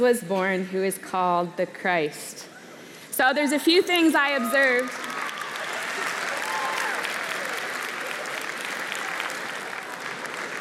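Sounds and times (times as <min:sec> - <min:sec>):
speech: 0:00.0 - 0:02.5, 0:03.2 - 0:05.1
high whistle-like cheers: 0:04.5 - 0:07.6
audience applause for a group of girls: 0:04.5 - 0:10.5.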